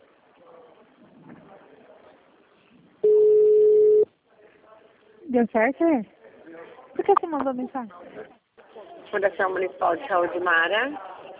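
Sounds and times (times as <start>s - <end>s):
automated phone-system beep on a digital answering line: 3.0s - 4.1s
speech: 5.3s - 6.2s, 7.1s - 8.4s, 9.1s - 11.1s.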